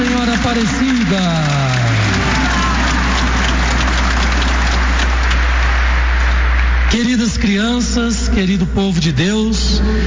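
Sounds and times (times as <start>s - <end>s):
audience applause: 0.0s - 7.1s
speech: 7.7s - 10.0s.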